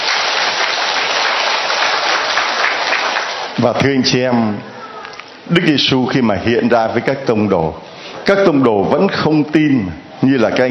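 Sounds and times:
audience applause: 0:00.0 - 0:03.6
speech: 0:03.6 - 0:04.7, 0:05.4 - 0:10.6.

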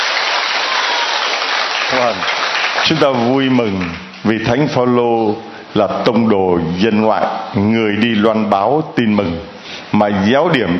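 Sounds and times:
congregation applause in a church celebrating Saint Paul as patron: 0:00.0 - 0:04.2
speech: 0:01.9 - 0:10.7.

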